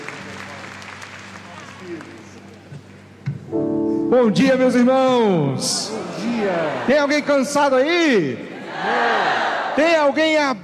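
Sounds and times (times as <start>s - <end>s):
audience applause: 0.0s - 2.7s
speech: 1.8s - 2.2s, 4.1s - 9.2s, 9.8s - 10.6s.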